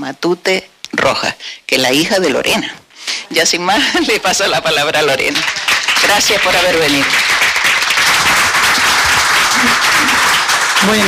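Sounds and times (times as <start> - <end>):
speech: 0.0 - 7.5, 10.8 - 11.0
audience applause: 3.9 - 11.0.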